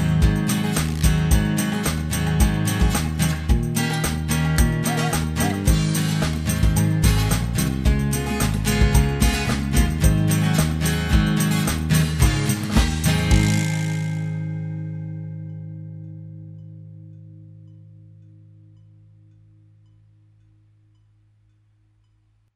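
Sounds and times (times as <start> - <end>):
electric guitar backing track: 0.0 - 18.4.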